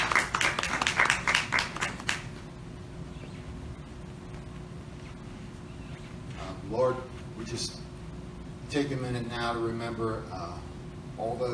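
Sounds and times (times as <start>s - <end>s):
audience applauding: 0.0s - 2.4s
speech: 7.5s - 7.8s, 8.7s - 11.5s.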